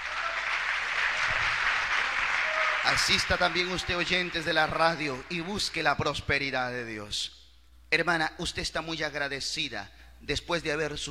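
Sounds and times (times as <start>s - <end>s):
church congregation applauding in praise of Christ: 0.0s - 6.3s
speech: 2.8s - 11.0s.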